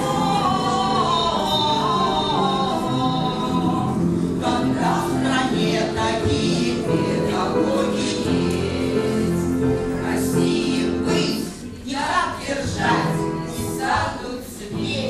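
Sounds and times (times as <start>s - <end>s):
singing teachers singing: 0.0s - 15.0s.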